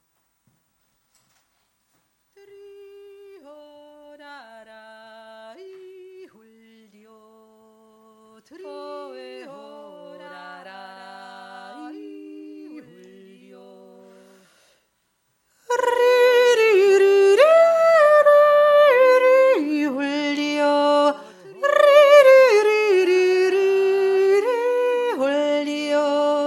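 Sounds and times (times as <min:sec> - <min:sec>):
third voice yodelling: 0:15.7 - 0:26.4.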